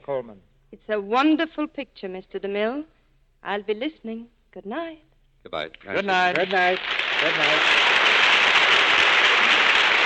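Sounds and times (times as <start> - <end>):
speech: 0.0 - 7.8
studio audience applause: 5.8 - 10.0.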